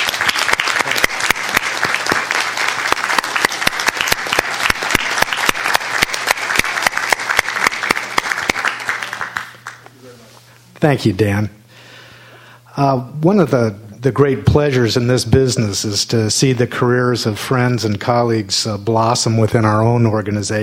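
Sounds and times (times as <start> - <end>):
audience applause welcoming a new school principal: 0.0 - 9.9
speech: 10.8 - 11.6, 12.8 - 20.6.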